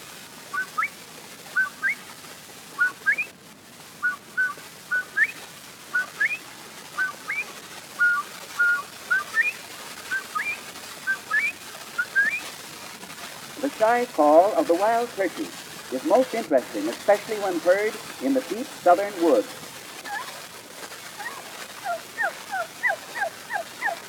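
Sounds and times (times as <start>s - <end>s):
guinea hen two-note call: 0.5s - 0.9s, 1.6s - 2.0s, 2.8s - 3.3s, 4.0s - 6.4s, 7.0s - 12.5s, 13.6s - 20.4s, 21.2s - 24.0s
speech: 13.8s - 19.6s.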